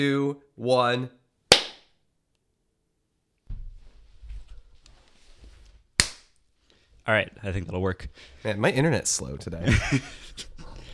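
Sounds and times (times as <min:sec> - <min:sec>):
speech: 0:00.0 - 0:01.2, 0:07.1 - 0:10.5
hand clap: 0:01.5 - 0:01.9, 0:06.0 - 0:06.3
laughter: 0:09.4 - 0:10.9.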